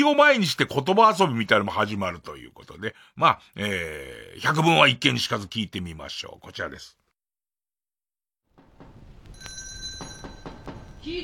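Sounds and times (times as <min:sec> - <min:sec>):
speech: 0:00.0 - 0:07.0, 0:11.0 - 0:11.2
soft clattering bumps: 0:08.6 - 0:11.2
small door bell jingling: 0:09.3 - 0:11.2.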